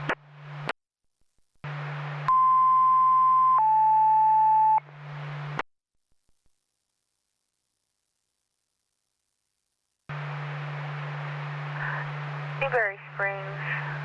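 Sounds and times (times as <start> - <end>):
low buzzing hum over fire dispatch radio: 0.0 - 14.0
alarm tone over fire dispatch radio for Newberry Springs: 2.3 - 4.8
radio hiss: 10.1 - 14.0.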